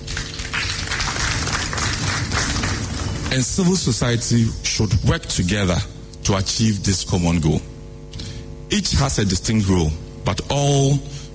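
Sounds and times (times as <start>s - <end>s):
audience applause: 0.0s - 3.5s
speech: 3.3s - 7.7s, 8.7s - 11.2s.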